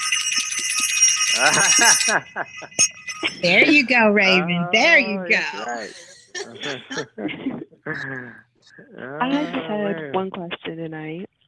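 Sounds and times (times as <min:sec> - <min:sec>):
bright high-pitched bell ringing: 0:00.0 - 0:05.7
laughter: 0:01.3 - 0:08.4, 0:09.2 - 0:10.2
speech: 0:01.4 - 0:11.4.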